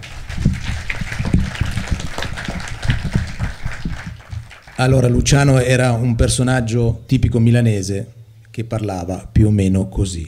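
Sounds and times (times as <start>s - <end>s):
audience applause: 0.0s - 5.2s
speech: 4.8s - 10.2s.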